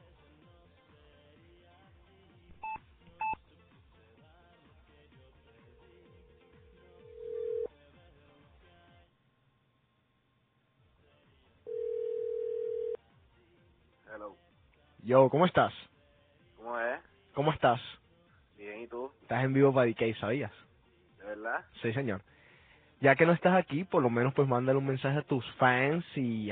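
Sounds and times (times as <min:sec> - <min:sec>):
soft music: 0:00.0 - 0:09.2, 0:10.8 - 0:22.3, 0:22.9 - 0:26.5
telephone keypad beeps: 0:02.6 - 0:03.4
telephone ringing tone: 0:06.9 - 0:07.7, 0:11.7 - 0:13.0
speech: 0:15.1 - 0:15.9, 0:17.4 - 0:18.0, 0:19.3 - 0:20.6, 0:21.4 - 0:22.3, 0:23.0 - 0:26.5.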